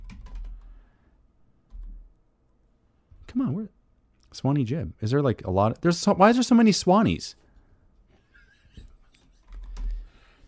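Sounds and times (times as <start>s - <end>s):
typing a name into a search box on a computer keyboard: 0.0s - 0.7s, 9.4s - 10.1s
speech: 3.3s - 7.4s.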